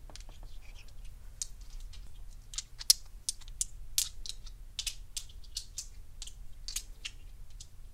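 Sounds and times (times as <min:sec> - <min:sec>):
stones clicking together: 0:00.1 - 0:07.7.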